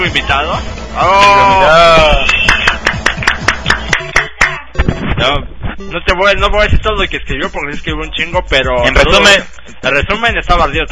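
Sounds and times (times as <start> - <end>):
speech: 0.1 - 2.4, 5.2 - 10.8
sharp claps: 2.0 - 4.7.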